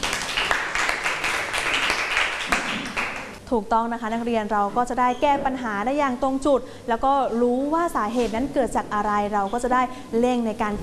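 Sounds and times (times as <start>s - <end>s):
group of students clapping: 0.0s - 3.4s
speech: 3.5s - 10.8s.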